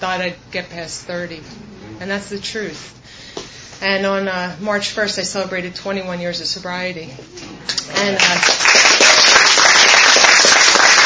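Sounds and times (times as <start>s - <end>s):
speech: 0.0s - 9.0s
audience clapping at an AA meeting: 7.7s - 11.0s.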